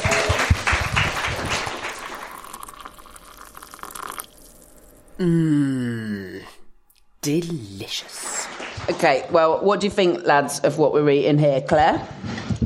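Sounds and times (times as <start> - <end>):
clapping: 0.0 - 2.4, 7.9 - 9.4
speech: 5.2 - 5.8, 7.3 - 12.6
vocal groan sliding downward in pitch: 5.2 - 6.6.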